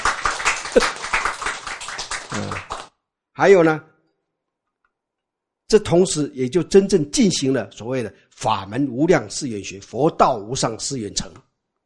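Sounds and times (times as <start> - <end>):
audience clapping: 0.0 - 3.0
speech: 0.8 - 1.0, 3.4 - 3.9, 5.7 - 11.5
faint vocal sounds: 2.3 - 2.7.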